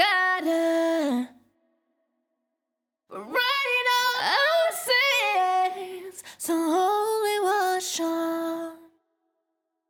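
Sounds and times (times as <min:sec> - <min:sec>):
wet a cappella pop vocals in E major at 123 BPM: 0:00.0 - 0:01.5, 0:03.1 - 0:09.0.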